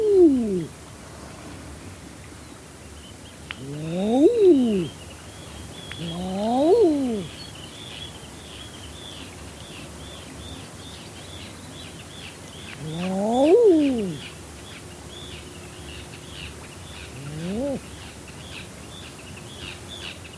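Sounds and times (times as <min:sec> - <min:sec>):
Common Eider drake courtship calls: 0:00.0 - 0:00.7, 0:03.6 - 0:05.0, 0:05.9 - 0:07.4, 0:12.7 - 0:14.3, 0:17.0 - 0:18.0
faint higher bird calls: 0:00.0 - 0:00.7, 0:02.9 - 0:20.3.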